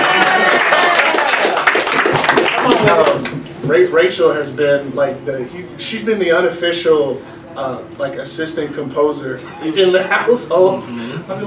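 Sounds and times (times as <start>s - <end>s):
audience clapping: 0.0s - 3.5s
speech: 3.7s - 11.4s.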